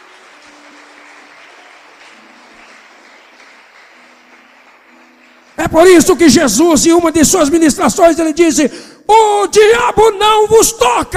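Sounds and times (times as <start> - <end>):
applause from a congregation at a church worship service: 0.0 - 8.0
speech: 5.6 - 11.1.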